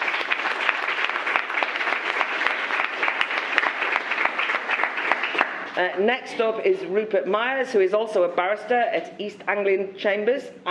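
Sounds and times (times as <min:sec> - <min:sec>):
audience applause welcoming a speaker at a talk: 0:00.0 - 0:05.8
speech: 0:05.8 - 0:10.7.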